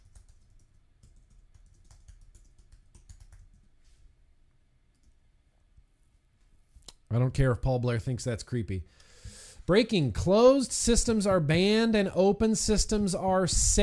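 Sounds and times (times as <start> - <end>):
typing on a computer keyboard: 0.0 - 3.7
speech: 7.1 - 9.1, 9.7 - 13.8.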